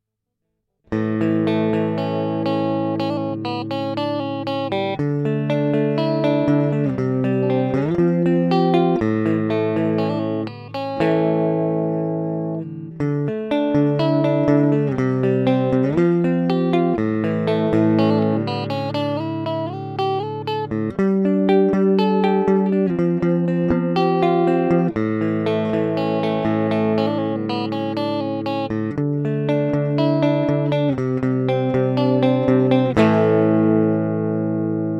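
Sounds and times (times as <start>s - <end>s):
Sterling clean electric guitar: 0.9s - 34.9s.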